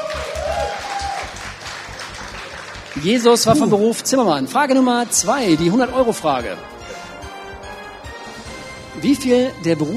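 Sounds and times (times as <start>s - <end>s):
applause: 0.0s - 3.9s
speech: 3.0s - 6.8s, 9.0s - 9.9s.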